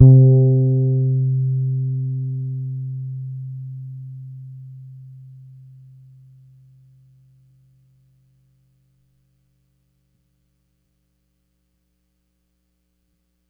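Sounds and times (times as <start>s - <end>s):
Pedulla Thunderbass bass guitar hard note: 0.0s - 6.7s.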